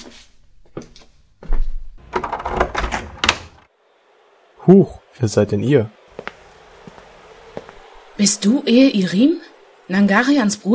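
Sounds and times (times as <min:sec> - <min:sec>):
door being opened: 0:02.0 - 0:03.7
speech: 0:04.7 - 0:06.0, 0:08.2 - 0:10.7.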